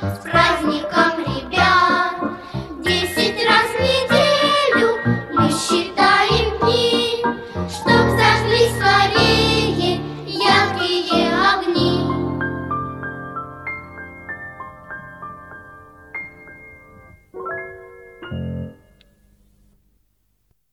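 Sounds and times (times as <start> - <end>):
children's choir singing: 0.0 - 12.4.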